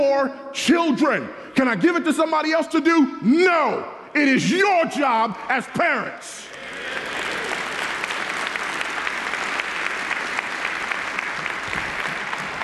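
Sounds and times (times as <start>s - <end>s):
speech: 0.2s - 6.5s
audience clapping: 6.4s - 12.6s.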